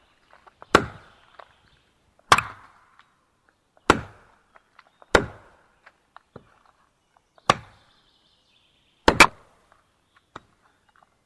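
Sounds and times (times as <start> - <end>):
axe chopping wood in a forest: 0.3 - 1.5, 2.2 - 3.1, 3.8 - 6.6, 7.4 - 7.9, 9.0 - 9.6.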